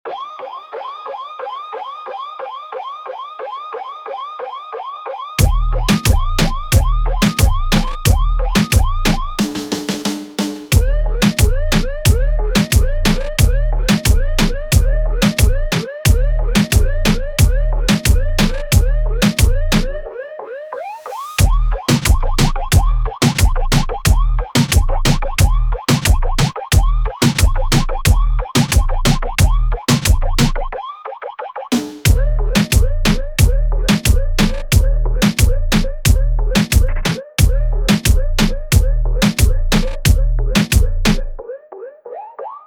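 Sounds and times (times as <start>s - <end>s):
reggaeton music: 0.0s - 42.6s.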